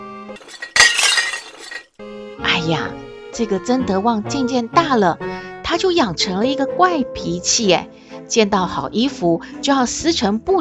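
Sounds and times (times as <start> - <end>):
speech: 0.4 - 0.9, 2.6 - 10.5
porcelain smashed on the floor: 0.4 - 1.8.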